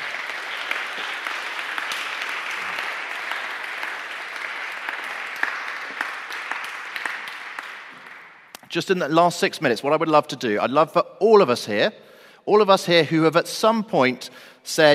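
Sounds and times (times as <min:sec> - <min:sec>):
audience applause: 0:00.0 - 0:08.5
speech: 0:08.7 - 0:14.9.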